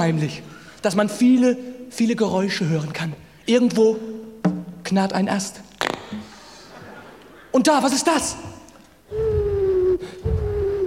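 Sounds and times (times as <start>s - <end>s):
speech: 0.0s - 4.2s, 4.9s - 6.2s, 7.6s - 8.5s
eagle owl hooting: 9.1s - 10.8s.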